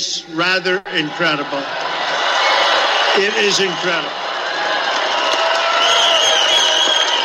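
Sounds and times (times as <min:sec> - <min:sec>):
speech: 0:00.0 - 0:01.9, 0:03.2 - 0:04.2
crowd cheering at a political rally: 0:00.8 - 0:07.2
whoops and shouts: 0:01.8 - 0:07.2.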